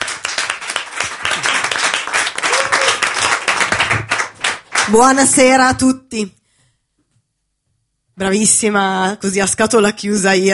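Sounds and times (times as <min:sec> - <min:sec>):
audience applause: 0:00.0 - 0:05.0
speech: 0:04.9 - 0:06.4, 0:08.2 - 0:10.5.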